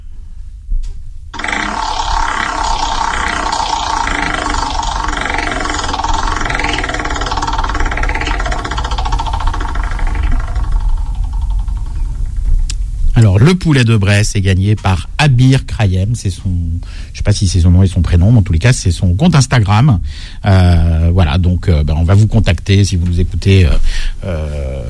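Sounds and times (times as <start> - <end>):
prize wheel spinning: 1.4 - 12.6
speech: 13.5 - 24.8.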